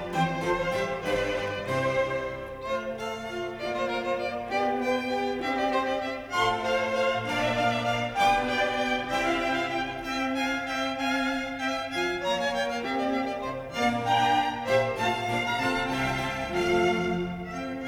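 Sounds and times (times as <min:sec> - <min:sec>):
clarinet quintet: 0:00.0 - 0:17.8.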